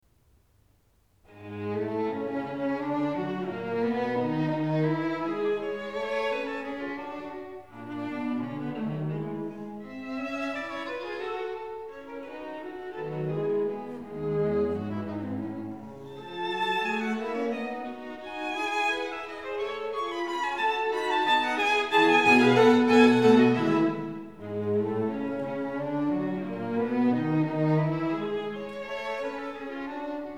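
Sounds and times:
string quartet playing: 1.3 - 30.3.

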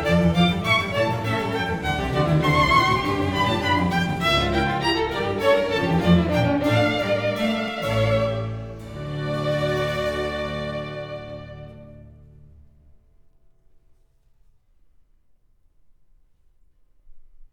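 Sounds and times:
two violins in a concerto: 0.0 - 12.4
string orchestra: 0.0 - 12.7.

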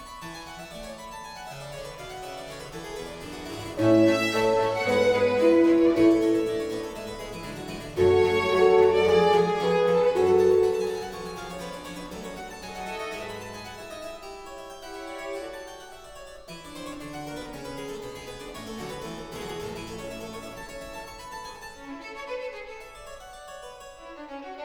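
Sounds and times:
keyboard concerto allegro: 3.6 - 11.9.

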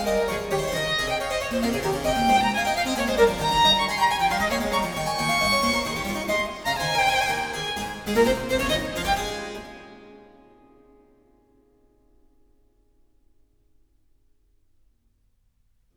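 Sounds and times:
harpsichord playing sonata allegro: 0.0 - 10.3
violin playing sonata allegro: 0.0 - 10.7.

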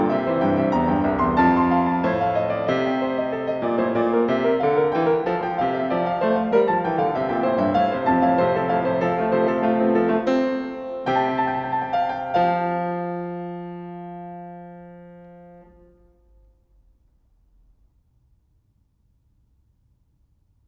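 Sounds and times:
keyboard duet in F major: 0.0 - 15.8.

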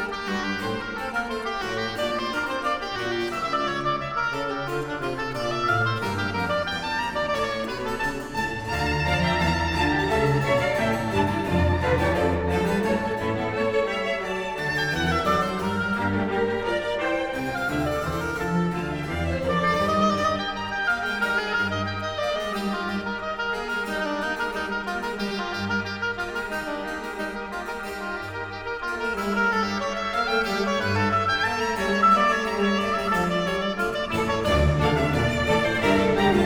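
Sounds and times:
oboe concerto music in D minor: 0.0 - 36.4.

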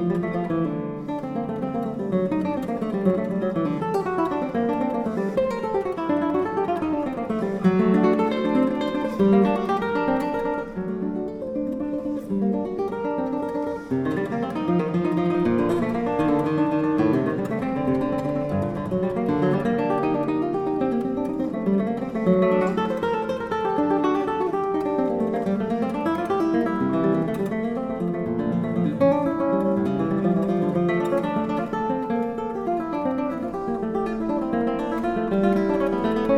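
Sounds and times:
classical piece in D minor played on guitar: 0.0 - 36.3.

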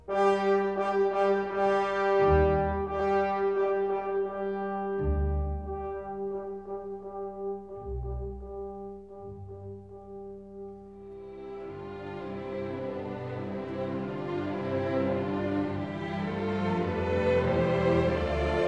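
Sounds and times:
violin and orchestra: 0.0 - 7.0, 11.0 - 18.6.

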